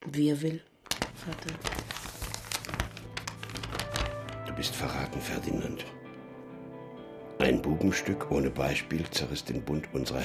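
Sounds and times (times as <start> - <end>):
speech: 0.1 - 1.8, 4.6 - 6.0, 7.4 - 10.2
stiff paper of a sealed letter crackling as broken open: 0.8 - 5.1.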